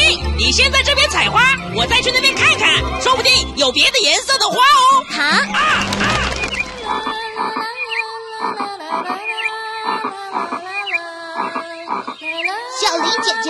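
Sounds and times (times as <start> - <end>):
speech: 0.5 - 6.2, 8.4 - 10.6, 12.2 - 13.4
frogs singing: 4.9 - 13.4.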